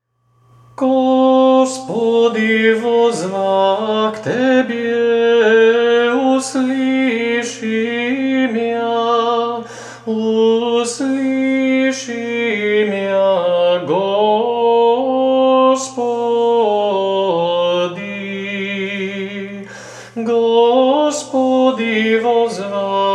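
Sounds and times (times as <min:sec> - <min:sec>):
Serbian Orthodox chant in the first tone: 0:00.8 - 0:23.1.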